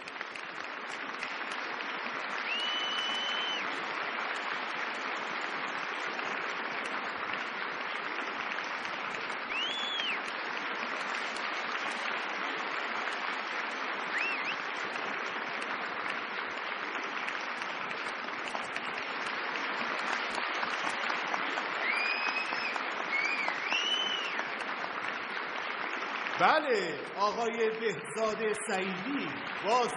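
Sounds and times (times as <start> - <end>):
audience applause at a film award ceremony for the best leading actor: 0.0 - 29.9
faint whistles: 2.4 - 3.7, 9.5 - 10.2, 14.1 - 14.7, 21.8 - 24.5
speech: 26.4 - 29.9.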